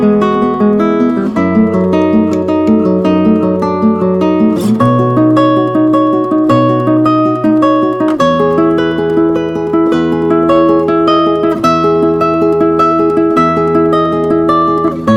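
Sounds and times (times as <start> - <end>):
Spanish guitarist playing: 0.0 - 15.1.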